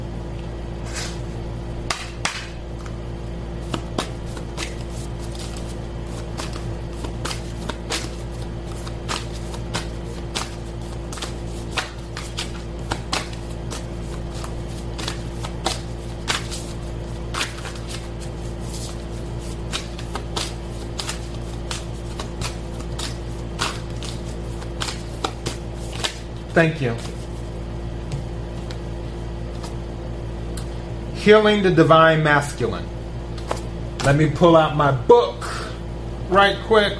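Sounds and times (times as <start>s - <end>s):
steady low hum: 0.0s - 36.9s
deck of Isis oracle cards being shuffled: 3.6s - 28.9s, 29.5s - 29.8s, 33.3s - 34.2s
speech: 26.6s - 27.2s, 31.2s - 33.0s, 34.1s - 35.5s, 36.3s - 36.9s.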